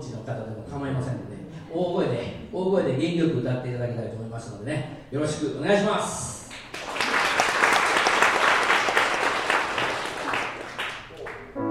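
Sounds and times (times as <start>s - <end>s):
speech: 0.3s - 6.4s
audience clapping: 6.5s - 11.6s.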